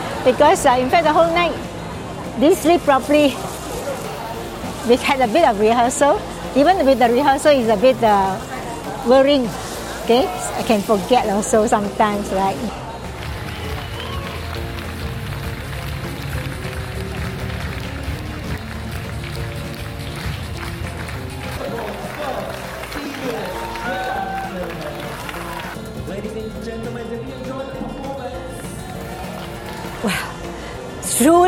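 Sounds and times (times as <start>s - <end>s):
speech: 0.2s - 1.7s, 2.4s - 3.5s, 4.8s - 12.8s
large crowd clapping and cheering: 12.8s - 25.9s, 28.7s - 30.4s
shouts and whoops from crowd: 13.5s - 14.6s, 23.2s - 25.8s.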